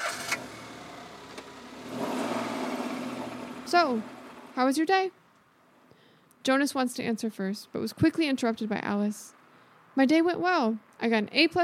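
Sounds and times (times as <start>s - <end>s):
family car engine starting: 0.0s - 4.8s
speech: 3.7s - 5.2s, 6.4s - 9.4s, 10.0s - 11.6s.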